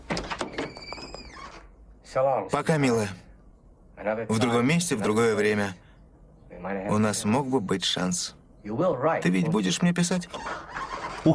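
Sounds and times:
hotel room door hinge squeak: 0.1s - 1.8s, 10.3s - 11.3s
speech: 2.1s - 3.3s, 4.0s - 5.8s, 6.6s - 11.3s.

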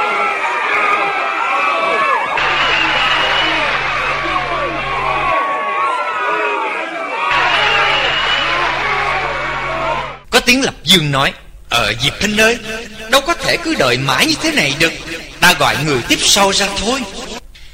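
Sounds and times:
crowd murmuring: 0.0s - 10.2s
whistling: 2.4s - 4.0s, 7.3s - 9.2s
speech: 10.5s - 17.2s.

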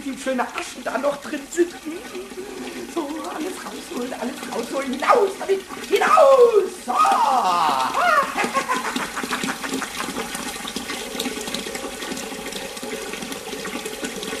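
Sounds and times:
running water from a tap: 0.0s - 14.3s
speech: 0.1s - 8.2s
laughter: 1.3s - 5.4s, 6.7s - 10.2s.

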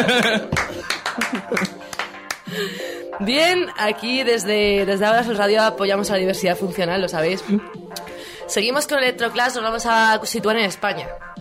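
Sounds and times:
laughter: 0.0s - 1.8s
speech: 0.0s - 1.8s, 2.5s - 11.3s
applause: 0.5s - 2.5s.

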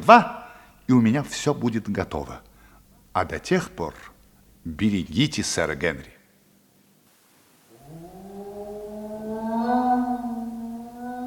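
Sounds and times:
speech: 0.0s - 2.5s, 3.2s - 6.2s
dog howling: 7.7s - 11.2s.

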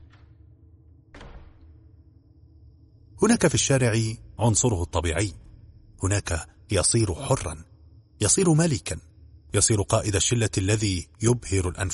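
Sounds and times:
apartment door being opened: 1.1s - 1.8s
speech: 3.2s - 5.4s, 6.0s - 11.9s.

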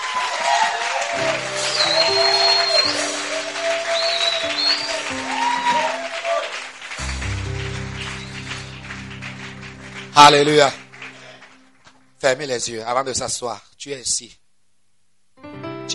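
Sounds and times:
church congregation cheering with joyful cries: 0.0s - 12.1s
clapping: 0.0s - 12.1s
speech: 0.1s - 1.2s, 10.2s - 10.8s, 12.2s - 14.4s
sustained musical chords: 1.2s - 12.6s.

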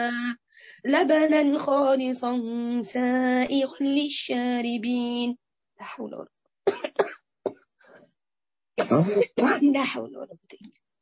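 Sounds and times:
speech: 0.0s - 6.4s, 8.8s - 10.8s
woman giving a religious lesson coughing and clearing her throat: 6.7s - 7.2s, 8.8s - 9.7s.

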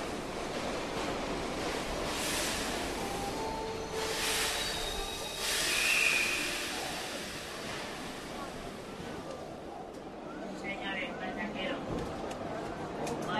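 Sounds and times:
subway train pulling into a station: 0.0s - 13.3s.

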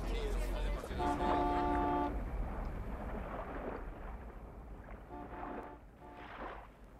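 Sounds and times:
windy rumble: 0.0s - 6.9s
distant car horn honking: 0.9s - 2.2s, 5.1s - 6.4s.

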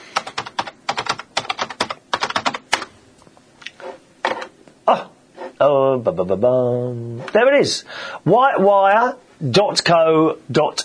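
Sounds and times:
typing a web search into Google on a computer keyboard: 0.1s - 2.9s
speech: 5.6s - 10.8s.

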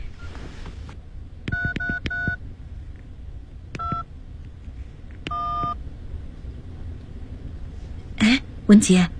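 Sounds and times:
low rumble: 0.0s - 9.1s
electronic phone keypad tones as a number is dialed: 1.5s - 2.4s, 3.8s - 4.0s, 5.3s - 5.8s
speech: 8.7s - 9.1s.

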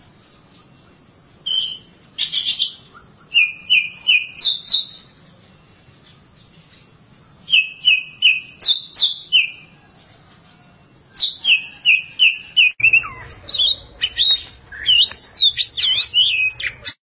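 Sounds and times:
Oriental magpie-robin singing: 1.4s - 5.1s, 7.5s - 9.7s, 11.1s - 17.0s.

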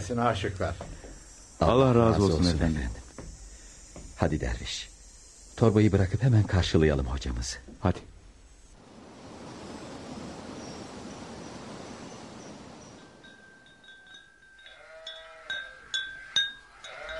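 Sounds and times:
speech: 0.0s - 0.9s, 1.6s - 3.0s, 4.2s - 4.9s, 5.6s - 8.1s
sheep bleating: 14.7s - 15.8s, 16.7s - 17.1s.

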